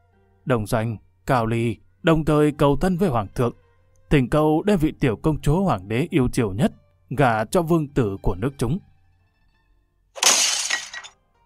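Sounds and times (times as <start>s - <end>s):
speech: 0.5s - 8.9s
thrown teapot shattering: 10.2s - 11.1s.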